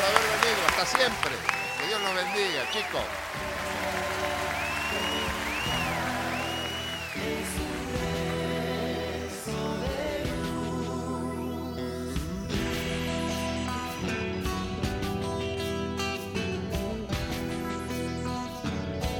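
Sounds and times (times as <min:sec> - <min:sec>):
crowd applause: 0:00.0 - 0:09.5
speech: 0:00.8 - 0:03.7
loud music holding tonal chords: 0:03.2 - 0:19.1.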